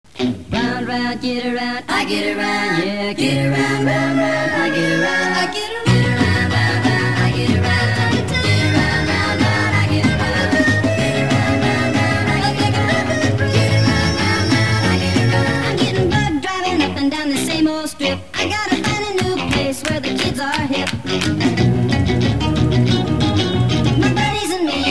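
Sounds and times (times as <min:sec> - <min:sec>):
music: 0:00.1 - 0:24.8.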